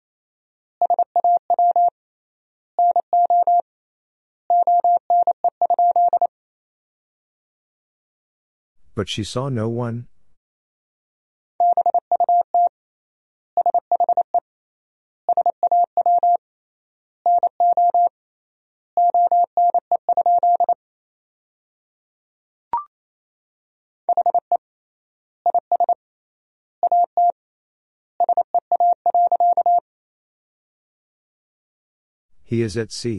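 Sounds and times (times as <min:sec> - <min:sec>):
fast Morse code beeps at 28 wpm: 0:00.8 - 0:01.9, 0:02.8 - 0:03.6, 0:04.5 - 0:06.3, 0:11.6 - 0:12.7, 0:13.6 - 0:14.3, 0:15.3 - 0:16.4, 0:17.3 - 0:18.1, 0:19.0 - 0:20.8, 0:24.1 - 0:24.5, 0:26.8 - 0:27.3, 0:28.2 - 0:29.8
speech: 0:09.0 - 0:10.1, 0:32.5 - 0:33.1.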